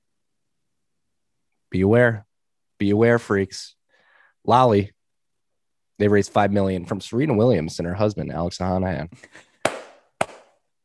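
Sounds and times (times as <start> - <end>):
speech: 1.7 - 3.8, 4.4 - 5.0, 6.0 - 9.5
hand claps: 9.6 - 10.6.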